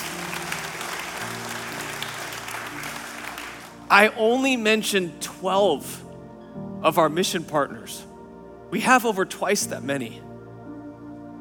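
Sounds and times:
audience applause: 0.0 - 3.9
speech: 3.9 - 6.0, 6.8 - 8.1, 8.7 - 10.3.

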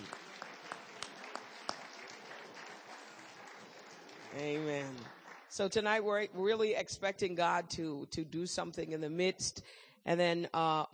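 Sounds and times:
audience hand clapping: 0.0 - 5.6
speech: 4.3 - 10.9.

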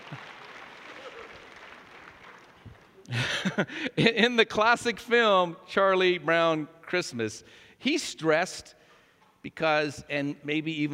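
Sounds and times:
crowd applause: 0.0 - 3.0
speech: 3.1 - 8.8, 9.4 - 10.9.

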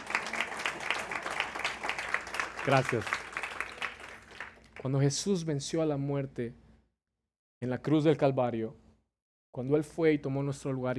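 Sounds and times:
audience applauding: 0.0 - 4.9
speech: 2.6 - 3.2, 4.8 - 6.6, 7.6 - 8.8, 9.6 - 10.9.

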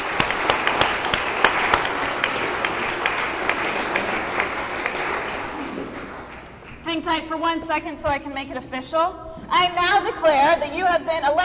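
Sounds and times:
audience applauding: 0.0 - 6.8
speech: 7.4 - 11.4.

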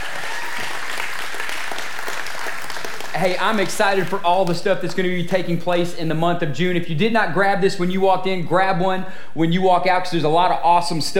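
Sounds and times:
audience applause: 0.0 - 4.3
speech: 3.2 - 11.1.

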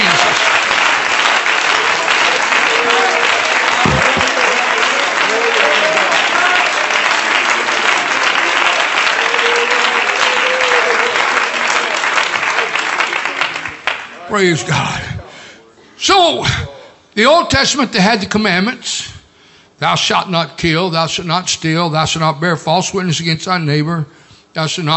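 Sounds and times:
audience clapping hands in praise: 0.0 - 14.3
speech: 14.4 - 15.0, 16.0 - 16.6, 17.2 - 19.2, 19.8 - 24.9.

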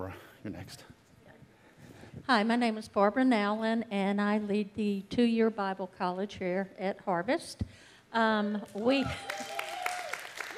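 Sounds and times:
speech: 0.1 - 1.0, 2.3 - 9.5
students cheering and clapping at a Bible college: 8.9 - 10.5.

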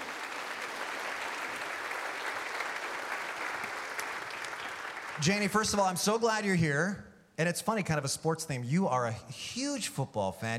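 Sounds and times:
audience applause welcoming a guest: 0.0 - 5.9
speech: 5.2 - 10.5.

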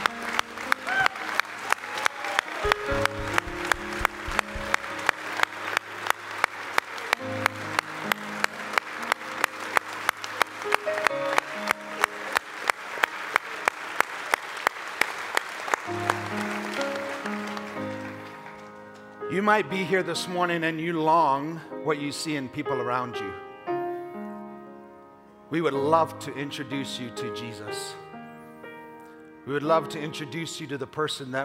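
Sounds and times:
audience clapping in rhythm: 0.0 - 19.2
instrumental music with low bass notes: 2.7 - 4.9
speech: 19.4 - 23.4, 25.5 - 28.0, 29.5 - 31.4.

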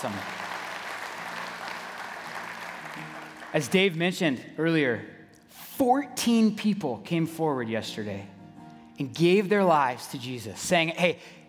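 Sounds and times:
speech: 0.0 - 0.4, 3.0 - 5.2, 5.8 - 8.3, 9.0 - 11.4
audience applause: 0.0 - 4.0.

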